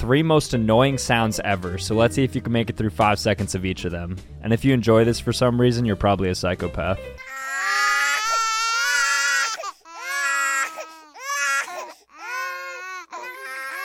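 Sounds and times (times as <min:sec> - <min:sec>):
speech: 0:00.0 - 0:07.2
baby crying: 0:07.2 - 0:13.8.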